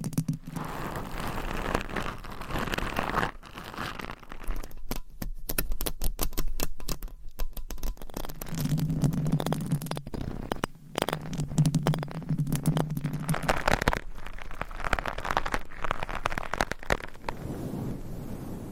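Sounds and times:
dense crackly scraping: 0.0 - 18.7.

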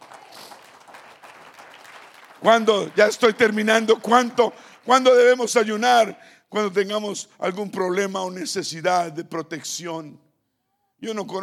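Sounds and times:
audience applause: 0.0 - 5.0
speech: 2.4 - 10.2, 11.0 - 11.4.

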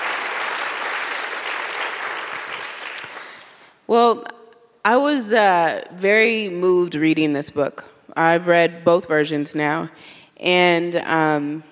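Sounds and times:
audience applause: 0.0 - 3.4
speech: 3.9 - 11.7.

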